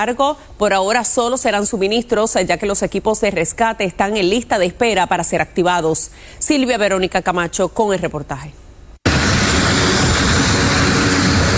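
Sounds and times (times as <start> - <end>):
speech: 0.0 - 8.6
airplane departing from Puerto Rico carrying humanitarian aid to Venezuela: 9.0 - 11.5.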